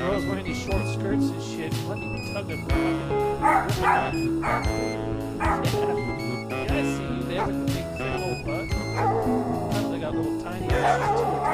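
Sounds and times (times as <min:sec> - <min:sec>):
sustained tonal backdrop: 0:00.0 - 0:11.5
speech: 0:02.4 - 0:06.0
dog barking: 0:03.4 - 0:06.0, 0:07.4 - 0:07.7, 0:08.9 - 0:09.6, 0:10.7 - 0:11.5.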